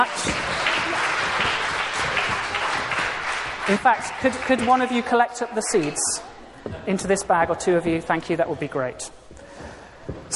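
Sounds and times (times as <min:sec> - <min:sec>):
audience applause for the actors: 0:00.0 - 0:05.2
speech: 0:03.7 - 0:09.2.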